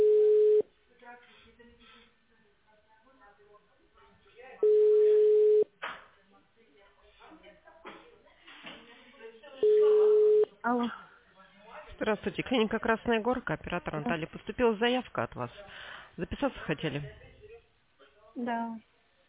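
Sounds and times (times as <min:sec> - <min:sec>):
telephone ringback tone while an automated call to a patient connects: 0:00.0 - 0:00.6, 0:04.6 - 0:05.7, 0:09.6 - 0:10.5
speech: 0:12.0 - 0:17.3, 0:18.4 - 0:18.9.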